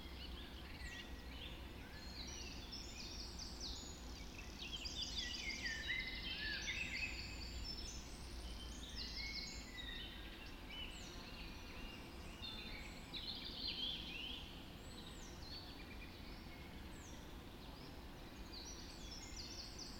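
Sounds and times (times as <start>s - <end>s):
dawn chorus of birds singing: 0.0s - 19.9s.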